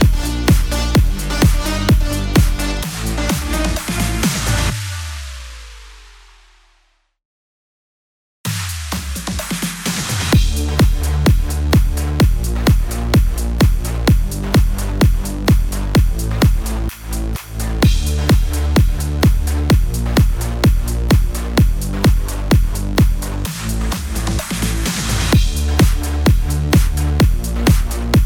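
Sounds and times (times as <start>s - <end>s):
electro house music in D minor: 0.0s - 5.3s, 8.9s - 28.2s.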